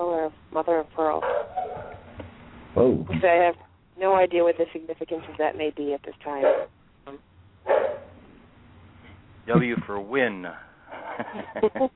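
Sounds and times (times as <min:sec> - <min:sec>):
quiet hum: 0:00.0 - 0:11.9
speech: 0:00.3 - 0:01.4, 0:02.8 - 0:07.3, 0:09.5 - 0:11.9
dog barking: 0:01.2 - 0:02.1, 0:06.4 - 0:06.7, 0:07.7 - 0:08.2
laughter: 0:09.5 - 0:10.0, 0:10.9 - 0:11.9.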